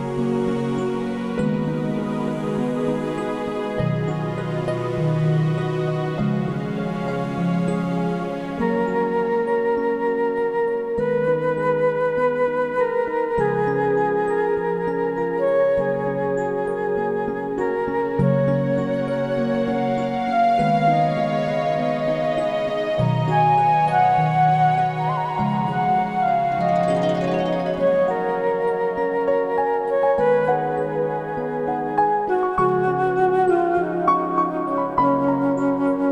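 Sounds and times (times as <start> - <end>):
relaxing music: 0.0 - 36.1.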